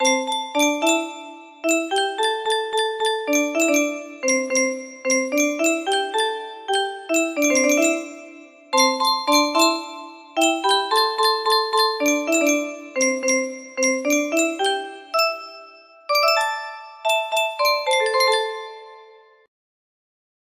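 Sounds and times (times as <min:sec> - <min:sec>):
music box melody: 0:00.0 - 0:19.5.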